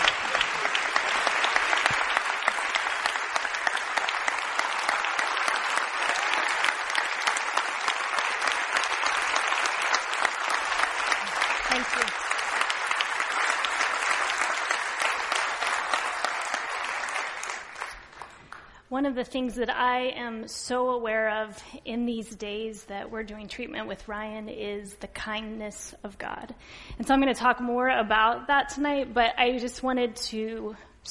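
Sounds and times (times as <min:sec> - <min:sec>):
audience applause: 0:00.0 - 0:18.6
speech: 0:19.0 - 0:31.1.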